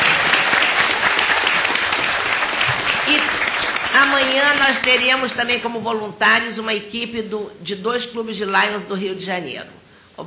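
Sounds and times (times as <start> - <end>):
audience applause: 0.0 - 5.4
speech: 4.0 - 10.2.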